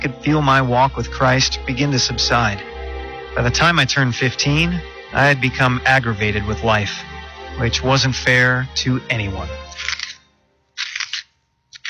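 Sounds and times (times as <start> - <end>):
speech: 0.0 - 2.7, 3.4 - 9.9
pencil being sharpened: 9.7 - 10.2, 10.8 - 11.8.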